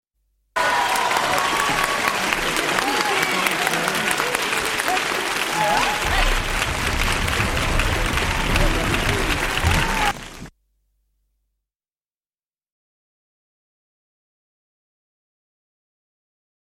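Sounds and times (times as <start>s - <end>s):
people shouting: 0.6s - 10.2s
applause: 0.6s - 10.5s
crowd cheering: 0.6s - 10.5s.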